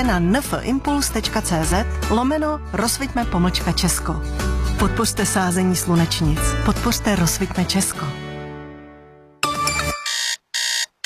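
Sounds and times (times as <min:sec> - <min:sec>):
speech: 0:00.0 - 0:08.2
tone: 0:09.4 - 0:11.0
alarm clock ringing: 0:09.6 - 0:11.0.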